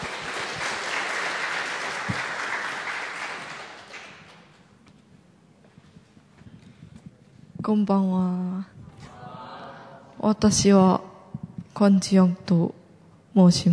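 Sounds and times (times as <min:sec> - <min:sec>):
audience applause: 0:00.0 - 0:04.6
speech: 0:07.7 - 0:08.7, 0:10.2 - 0:11.1, 0:11.8 - 0:12.8, 0:13.4 - 0:13.7.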